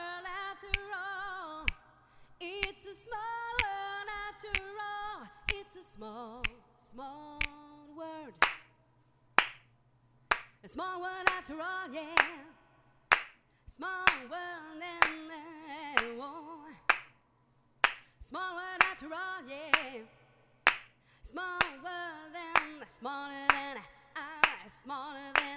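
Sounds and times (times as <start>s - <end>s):
a cappella singing: 0.0s - 8.4s, 10.6s - 12.8s, 13.7s - 16.9s, 18.2s - 20.4s, 21.2s - 25.5s.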